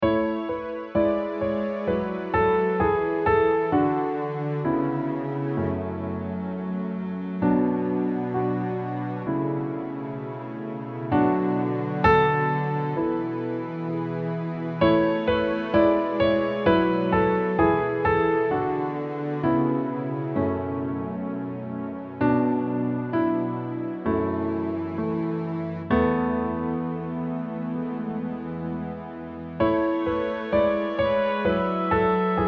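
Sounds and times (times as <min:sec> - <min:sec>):
instrumental music: 0:00.0 - 0:32.4.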